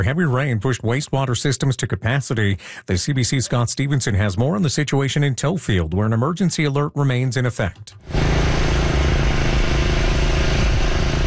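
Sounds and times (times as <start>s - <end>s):
speech: 0.0s - 8.9s
water pumps running at full power in Tofield: 8.0s - 11.2s.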